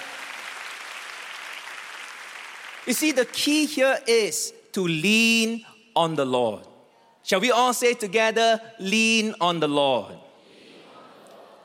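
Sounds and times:
audience clapping: 0.0 - 3.8
speech: 2.8 - 10.2.

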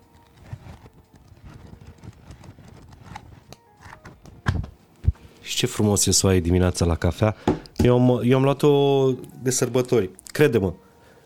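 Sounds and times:
magazine pages being leafed through: 0.0 - 5.8
speech: 5.5 - 10.8.

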